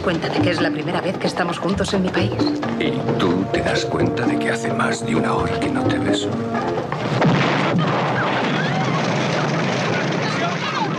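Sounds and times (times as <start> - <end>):
speech: 0.0 - 8.1
roaring rumble of debris: 6.8 - 10.9
bomb explosion in a film scene: 6.9 - 10.9.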